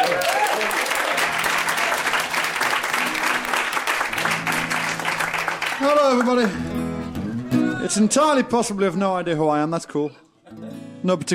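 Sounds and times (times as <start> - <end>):
crowd applauding a comic songwriter welcomed onto the stage: 0.0 - 7.8
speech: 5.8 - 6.8, 7.8 - 11.3.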